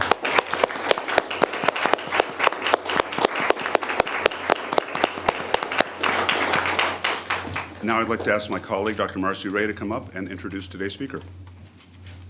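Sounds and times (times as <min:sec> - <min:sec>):
audience applause: 0:00.0 - 0:08.5
speech: 0:07.9 - 0:11.4.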